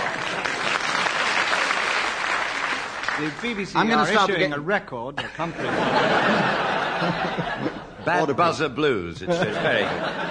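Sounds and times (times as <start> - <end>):
audience applause: 0.0 - 4.0
speech: 3.2 - 10.2
laughter: 5.2 - 10.2.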